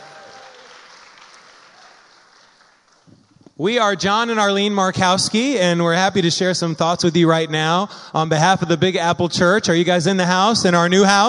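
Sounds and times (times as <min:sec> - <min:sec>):
round of applause: 0:00.0 - 0:03.3
speech: 0:03.6 - 0:11.2.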